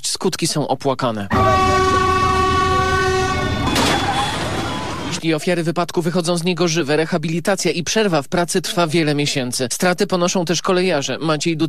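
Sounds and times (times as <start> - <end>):
speech: 0.2 - 1.8, 5.1 - 11.6
multi-toned train horn: 1.3 - 5.1.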